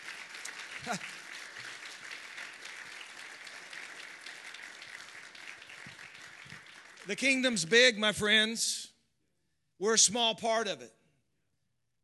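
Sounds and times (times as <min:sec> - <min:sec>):
audience applause: 0:00.0 - 0:08.0
speech: 0:00.8 - 0:01.2, 0:07.1 - 0:08.9, 0:09.8 - 0:11.0.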